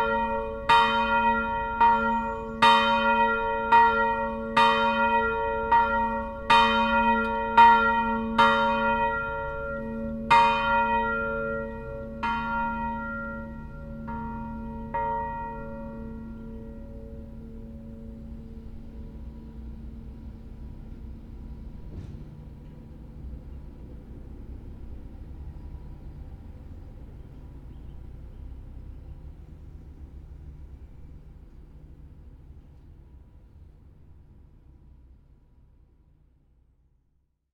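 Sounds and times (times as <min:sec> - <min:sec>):
west bell of a cemetery ringing: 0:00.0 - 0:17.4.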